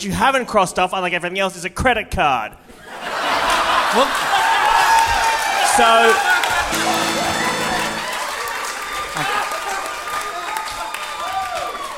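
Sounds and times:
speech: 0.0 - 2.8, 3.9 - 4.5, 5.8 - 7.1
laughter: 2.8 - 5.0
crowd voices and cheers: 3.9 - 11.9
audience applause: 4.0 - 11.9.

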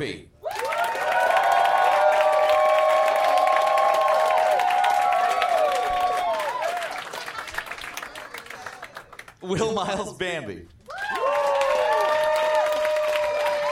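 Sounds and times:
speech: 0.0 - 0.3, 9.5 - 10.8
cheering and whooping voices: 0.4 - 7.4, 10.9 - 13.7
crowd applause: 0.5 - 9.4, 10.9 - 13.7.

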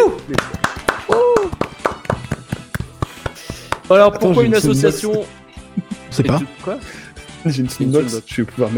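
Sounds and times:
small group clapping: 0.0 - 4.0
speech: 0.3 - 0.5, 3.9 - 5.4, 6.1 - 8.7
whoops of cheering: 0.8 - 2.2
laughter: 4.3 - 7.2.

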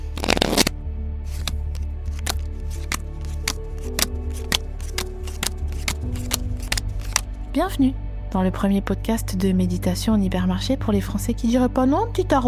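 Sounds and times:
real playing cards shuffling: 0.0 - 7.4
speech: 7.6 - 12.4.

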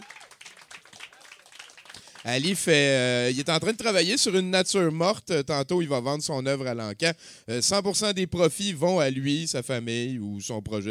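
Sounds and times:
audience applause: 0.0 - 2.6
speech: 2.2 - 10.9.

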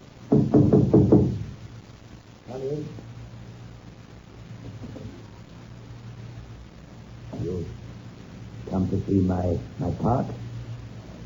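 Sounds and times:
knocking on a cottage door: 0.3 - 1.6
speech: 9.0 - 10.4.

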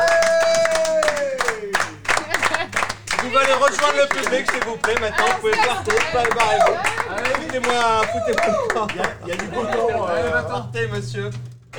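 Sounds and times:
audience applauding: 0.0 - 11.7
laughter: 0.0 - 11.7
speech: 3.3 - 11.7
falling tonal sound with harmonics: 5.6 - 11.7.

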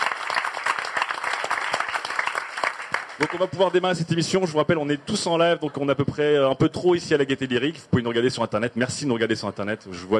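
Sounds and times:
audience applause at a live event: 0.0 - 3.9
speech: 3.2 - 10.1.

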